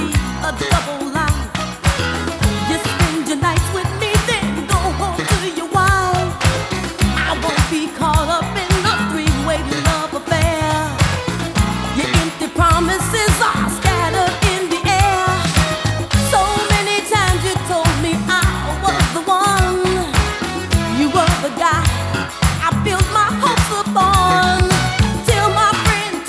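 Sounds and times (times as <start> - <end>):
disco music: 0.0 - 26.2.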